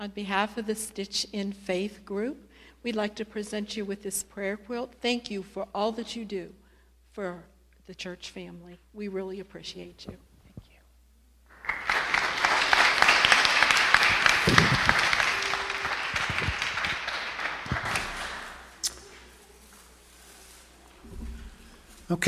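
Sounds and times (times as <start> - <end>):
speech: 0.0 - 6.6, 7.2 - 10.3
crowd applause: 11.5 - 18.8.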